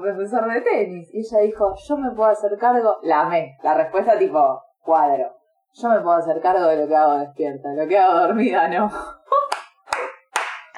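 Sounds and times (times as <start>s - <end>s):
speech: 0.0s - 9.2s
hands clapping: 9.5s - 10.7s.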